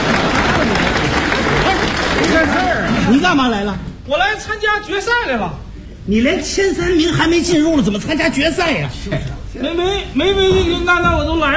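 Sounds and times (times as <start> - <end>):
audience applause welcoming contestants at a competition: 0.0 - 3.2
speech: 3.1 - 11.5.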